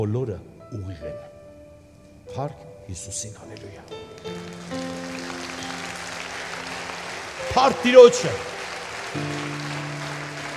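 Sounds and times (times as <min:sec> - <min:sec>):
speech: 0:00.0 - 0:01.4, 0:02.3 - 0:05.3, 0:07.5 - 0:09.7
church congregation applauding in praise during a service: 0:03.4 - 0:10.5
sustained musical tones: 0:03.9 - 0:10.5.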